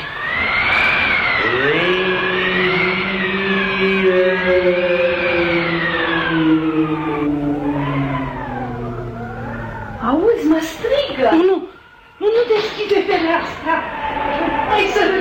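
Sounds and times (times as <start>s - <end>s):
wind howling wildly outside: 0.0s - 15.2s.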